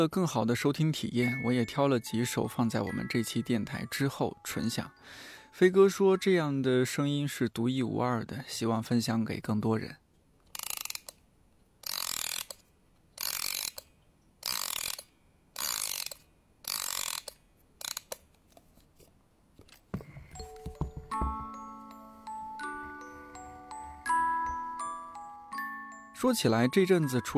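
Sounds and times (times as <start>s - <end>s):
speech: 0.0s - 10.0s, 26.2s - 27.3s
music box tinkling comb melody: 1.2s - 6.5s, 20.3s - 27.3s
music box winding ratcheting clicks: 10.5s - 11.2s, 11.8s - 12.6s, 13.2s - 18.2s.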